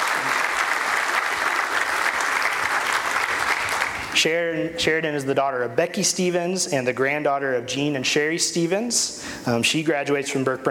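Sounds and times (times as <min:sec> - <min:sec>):
audience clapping: 0:00.0 - 0:04.2
speech: 0:04.2 - 0:10.6.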